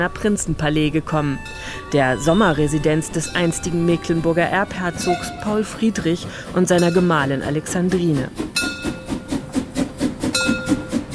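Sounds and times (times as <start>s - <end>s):
speech: 0.0s - 8.6s
old resort steam train puffing loudly: 1.4s - 11.1s.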